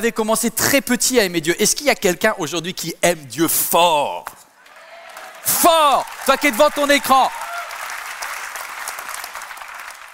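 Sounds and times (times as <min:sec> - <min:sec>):
speech: 0:00.0 - 0:04.4, 0:05.4 - 0:07.4
audience applause: 0:04.6 - 0:10.1.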